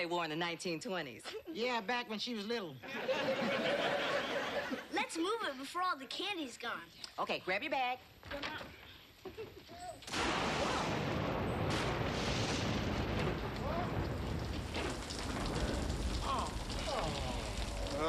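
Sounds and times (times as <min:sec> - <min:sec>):
speech: 0:00.0 - 0:04.1, 0:05.1 - 0:10.5
laughter: 0:02.8 - 0:04.9
thunderstorm: 0:10.1 - 0:18.0.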